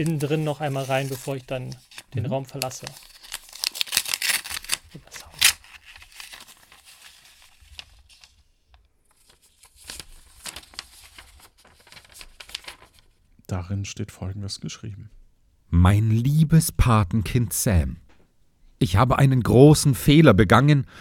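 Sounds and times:
speech: 0.0s - 3.1s, 13.7s - 18.0s, 18.8s - 20.9s
paper letter crinkling and tearing as opened: 0.0s - 13.2s.

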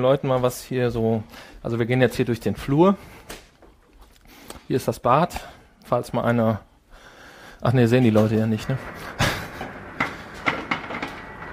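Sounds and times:
speech: 0.0s - 3.4s, 4.7s - 6.7s, 7.6s - 9.0s
ice cube machine rattling: 8.4s - 11.5s.

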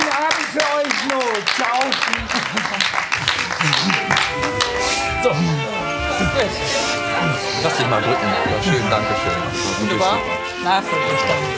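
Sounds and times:
applause closing an evening event: 0.0s - 4.9s
laughter: 0.0s - 11.5s
speech: 0.6s - 4.5s, 6.4s - 11.5s.

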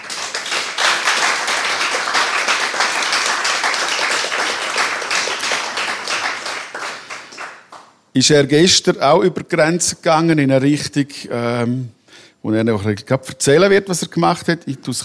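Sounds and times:
audience applause welcoming guest: 0.0s - 7.8s
speech: 8.2s - 15.0s.

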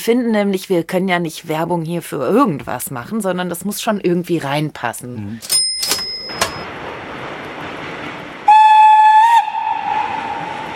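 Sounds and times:
speech: 0.0s - 5.7s
train rumbling on rails: 6.2s - 10.7s
train steam whistle: 8.5s - 10.7s.

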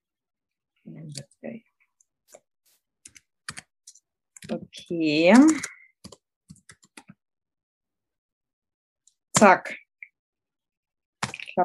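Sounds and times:
speech: 1.0s - 1.7s, 4.8s - 5.7s, 9.4s - 9.8s
keyboard clicks typing a birth date, birth time and birthplace: 3.1s - 4.6s, 5.3s - 7.2s.

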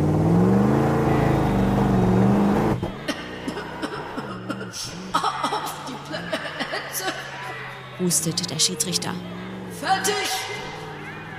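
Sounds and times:
engine revving as vehicle accelerates: 0.0s - 11.3s
speech: 8.0s - 10.6s.

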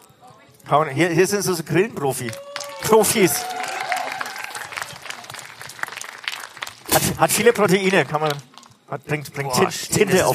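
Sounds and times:
speech: 0.7s - 3.6s, 7.0s - 10.3s
audience clapping: 2.2s - 8.8s.

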